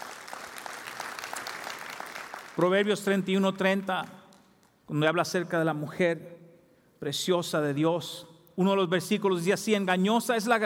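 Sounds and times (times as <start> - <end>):
audience applause: 0.0 - 2.9
speech: 2.6 - 4.2, 4.9 - 6.4, 7.0 - 10.6.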